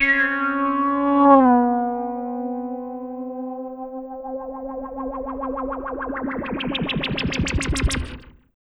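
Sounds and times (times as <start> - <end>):
synthetic wabber echo: 0.0 - 8.4.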